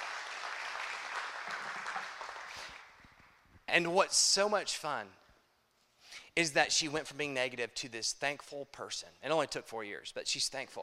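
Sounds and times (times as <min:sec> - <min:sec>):
audience applause: 0:00.0 - 0:03.3
speech: 0:03.7 - 0:05.2, 0:06.4 - 0:10.8.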